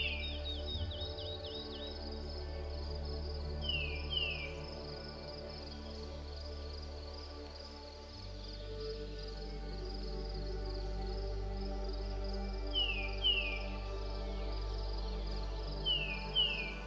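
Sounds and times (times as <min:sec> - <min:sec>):
forest songbirds chirping: 0:00.0 - 0:16.8
soft steady music with sustained tones and low drone: 0:00.0 - 0:16.8.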